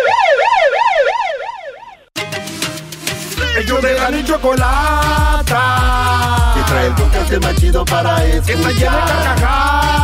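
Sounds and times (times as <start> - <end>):
police siren in fast yelp mode: 0.0 - 2.1
speech: 3.7 - 10.0.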